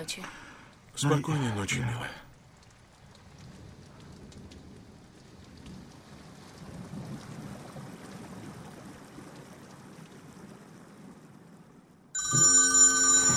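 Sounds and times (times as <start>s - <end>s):
speech: 0.0s - 0.4s, 1.0s - 2.2s
mobile phone ringing: 12.2s - 13.3s.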